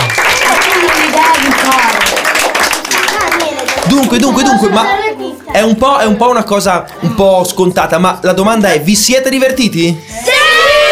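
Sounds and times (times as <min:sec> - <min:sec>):
audience applause: 0:00.0 - 0:04.7
speech: 0:04.0 - 0:10.4.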